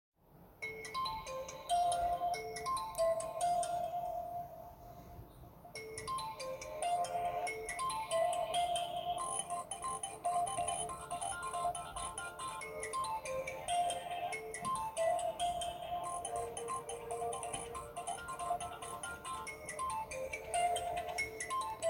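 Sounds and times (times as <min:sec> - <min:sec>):
Oppo A37 phone ringtone: 0:00.6 - 0:04.7, 0:05.7 - 0:21.8.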